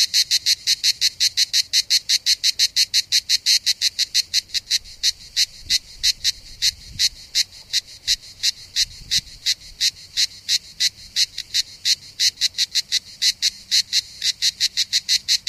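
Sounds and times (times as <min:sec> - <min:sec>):
cicada rasping pulses: 0:00.0 - 0:15.4.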